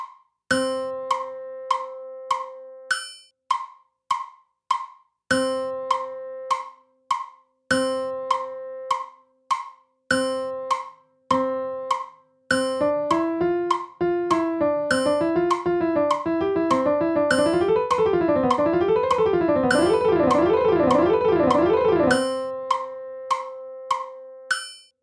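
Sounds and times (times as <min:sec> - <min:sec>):
piano: 0:00.5 - 0:02.9, 0:05.3 - 0:06.7, 0:07.7 - 0:09.0, 0:10.2 - 0:24.5.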